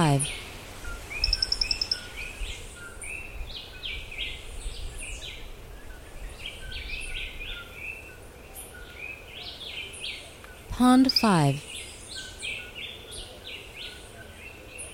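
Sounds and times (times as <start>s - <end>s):
speech: 0.0s - 0.4s, 10.8s - 11.7s
bird chorus: 0.0s - 0.5s, 1.1s - 2.7s, 9.5s - 14.1s.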